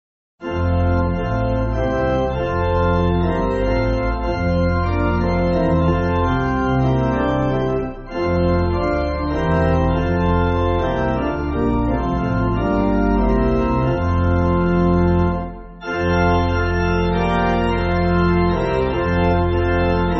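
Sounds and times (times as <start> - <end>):
pipe organ church music: 0.4 - 20.1.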